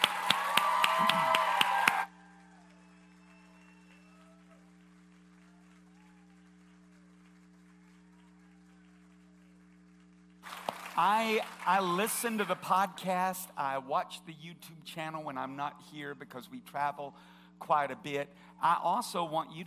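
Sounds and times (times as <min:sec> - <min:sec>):
round of applause: 0:00.0 - 0:12.9
speech: 0:11.0 - 0:19.6.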